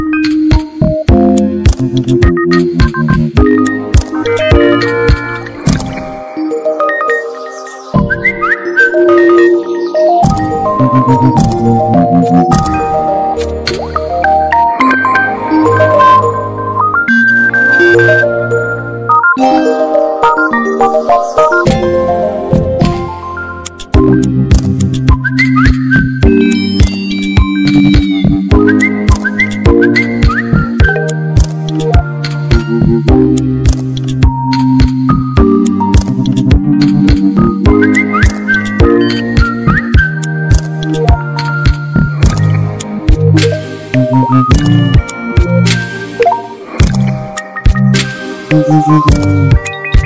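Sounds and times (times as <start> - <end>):
phone ringtone remix: 0.0 - 24.4, 25.0 - 50.0.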